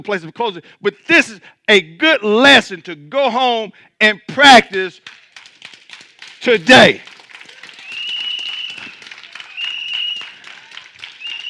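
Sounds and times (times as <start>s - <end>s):
speech: 0.0s - 5.2s, 6.4s - 7.1s
audience clapping: 4.6s - 11.4s.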